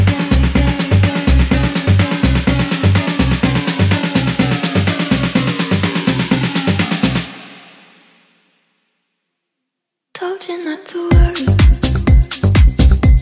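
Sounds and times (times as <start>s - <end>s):
afro house music: 0.0s - 7.8s, 11.1s - 13.2s.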